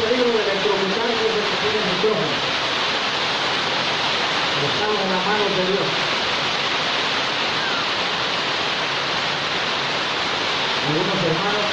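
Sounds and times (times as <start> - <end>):
heavy rain: 0.0 - 11.7
speech: 5.3 - 6.1.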